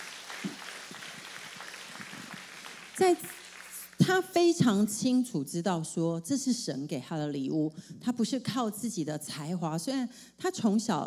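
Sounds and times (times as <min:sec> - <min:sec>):
audience clapping: 0:00.0 - 0:04.2
speech: 0:03.0 - 0:03.4, 0:04.0 - 0:11.0.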